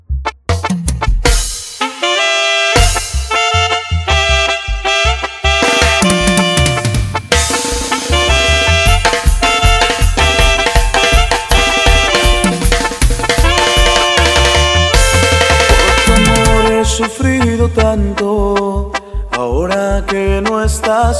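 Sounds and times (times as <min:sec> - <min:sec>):
extended duranguense dance music: 0:00.2 - 0:01.7, 0:02.8 - 0:21.1.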